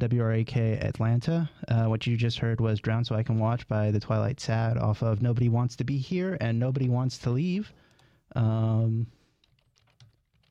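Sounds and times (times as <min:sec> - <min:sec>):
speech: 0:00.0 - 0:09.2
computer keyboard clicks while updating a radio playlist: 0:09.4 - 0:10.4.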